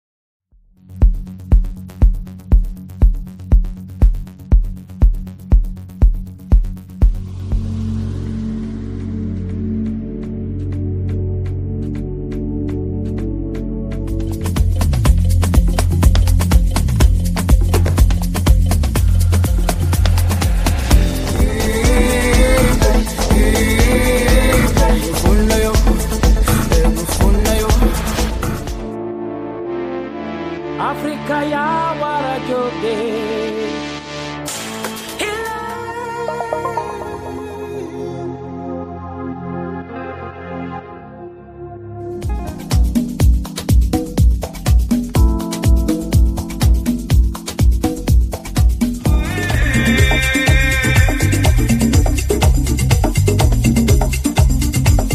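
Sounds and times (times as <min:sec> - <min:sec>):
afro house music: 0:00.9 - 0:29.0, 0:30.2 - 0:39.3, 0:42.2 - 0:55.1.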